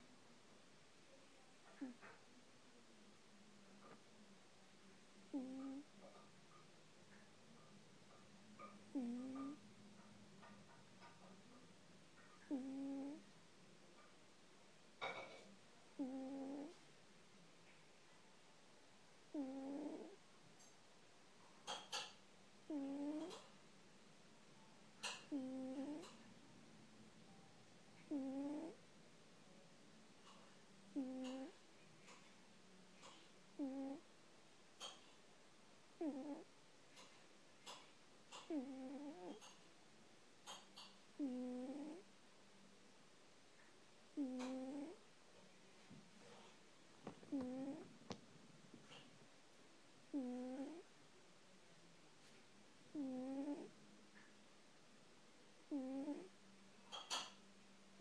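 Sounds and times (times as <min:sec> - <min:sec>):
cat snoring: 0:01.6 - 0:02.2, 0:05.2 - 0:06.6, 0:07.6 - 0:09.6, 0:12.2 - 0:13.3, 0:15.0 - 0:16.8, 0:19.3 - 0:20.2, 0:21.6 - 0:23.5, 0:25.0 - 0:26.3, 0:28.0 - 0:28.8, 0:30.2 - 0:32.3, 0:33.0 - 0:34.1, 0:34.8 - 0:35.1, 0:36.0 - 0:39.6, 0:40.4 - 0:42.1, 0:44.1 - 0:45.1, 0:46.2 - 0:48.1, 0:48.8 - 0:49.1, 0:50.1 - 0:50.9, 0:52.9 - 0:53.8, 0:55.6 - 0:57.4.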